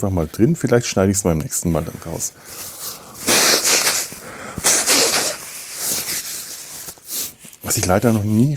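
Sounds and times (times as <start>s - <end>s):
speech: 0.0s - 3.0s, 7.7s - 8.5s
person blowing nose: 1.9s - 7.6s
nasal spray puffed into nostrils: 2.4s - 7.5s.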